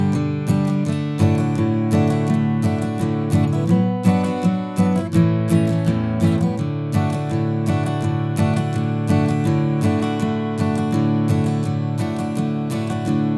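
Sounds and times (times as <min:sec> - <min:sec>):
Martin acoustic guitar: 0:00.0 - 0:13.3.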